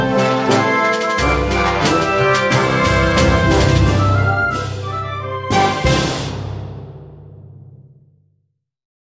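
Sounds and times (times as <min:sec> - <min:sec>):
high school marching band playing: 0:00.3 - 0:07.0.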